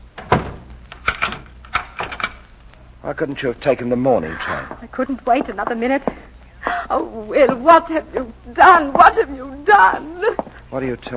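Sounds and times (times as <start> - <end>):
door being closed: 0.1 - 2.4
speech: 3.1 - 6.2, 6.9 - 11.1.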